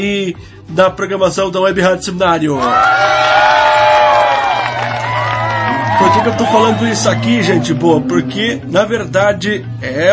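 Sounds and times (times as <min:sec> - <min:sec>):
speech: 0:00.0 - 0:04.0, 0:06.0 - 0:10.1
crowd cheering and whooping: 0:02.6 - 0:08.7.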